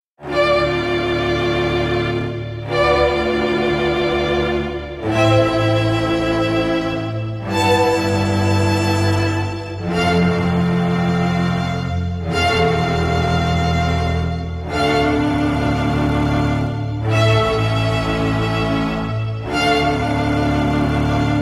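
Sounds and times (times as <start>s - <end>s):
quintet playing: 0.2s - 21.3s.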